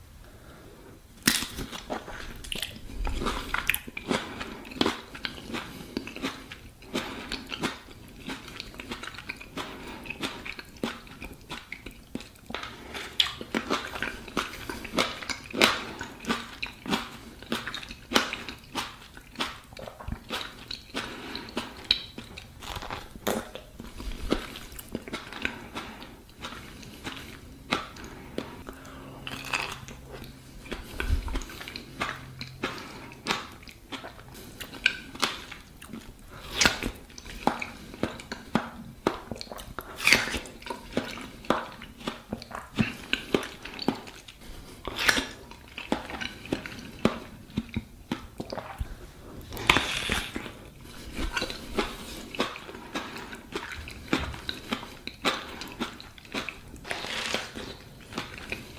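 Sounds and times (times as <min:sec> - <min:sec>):
person eating: 0:00.3 - 0:58.7.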